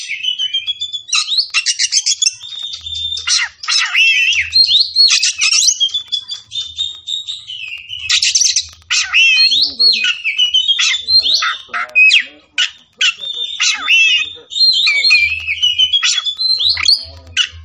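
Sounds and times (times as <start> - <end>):
Oriental magpie-robin singing: 0.0 - 17.6.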